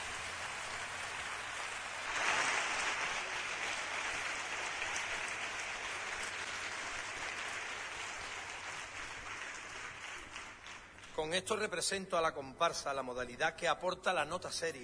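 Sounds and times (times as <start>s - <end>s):
audience applause: 0.0s - 11.2s
speech: 11.2s - 14.8s.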